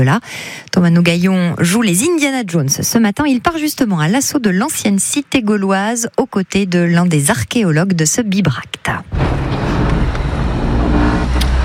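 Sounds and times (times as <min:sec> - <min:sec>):
speech: 0:00.0 - 0:09.6
archaeologists' service car road and engine drone at Bibracte: 0:09.1 - 0:11.6.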